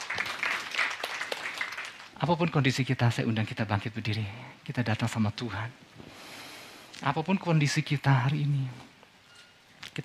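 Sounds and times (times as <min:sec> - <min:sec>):
audience applause: 0:00.0 - 0:02.2
speech: 0:02.2 - 0:06.0, 0:07.0 - 0:08.9.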